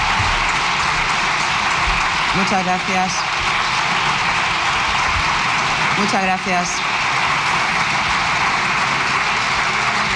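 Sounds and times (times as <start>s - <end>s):
parliament deputies applauding: 0.0s - 10.1s
speech: 2.4s - 3.3s, 6.0s - 6.9s.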